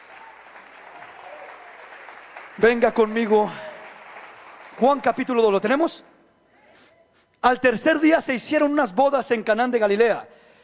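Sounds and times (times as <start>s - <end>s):
church congregation applauding during a sermon: 0.0s - 5.9s
speech: 2.6s - 3.6s, 4.8s - 6.1s, 7.4s - 10.4s.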